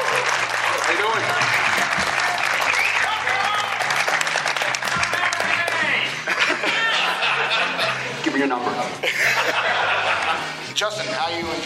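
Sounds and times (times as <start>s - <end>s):
audience applause: 0.0s - 7.5s
laughter: 5.9s - 11.0s
speech: 8.4s - 9.2s, 10.8s - 11.6s.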